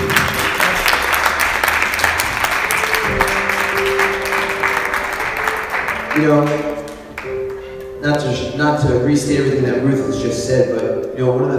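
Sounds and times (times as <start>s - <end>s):
audience clapping: 0.0s - 8.3s
speech: 6.2s - 6.7s, 8.3s - 11.5s.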